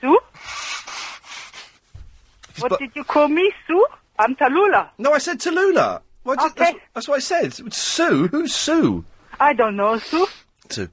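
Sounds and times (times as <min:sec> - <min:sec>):
person blowing nose: 0:00.3 - 0:01.8, 0:10.0 - 0:10.5
speech: 0:02.6 - 0:10.9.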